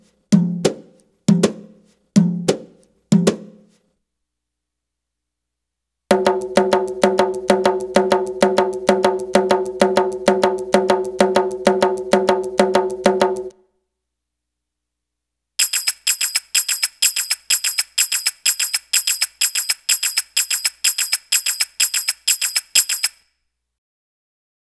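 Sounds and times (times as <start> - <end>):
Arabic rhythm percussion: 0.4 - 3.6, 6.1 - 13.5, 15.6 - 23.2.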